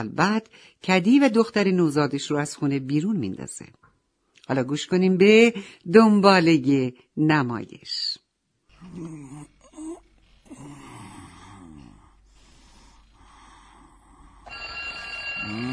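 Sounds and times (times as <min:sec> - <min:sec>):
speech: 0:00.0 - 0:03.8, 0:04.5 - 0:08.2, 0:08.8 - 0:09.5
alarm clock ringing: 0:14.4 - 0:15.7.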